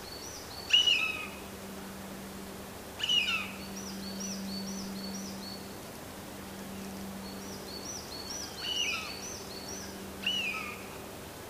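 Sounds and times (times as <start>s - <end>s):
low hum: 0.0s - 11.4s
Eurasian jay grating calls: 0.7s - 1.4s, 3.0s - 3.7s, 8.4s - 9.4s, 10.2s - 10.8s.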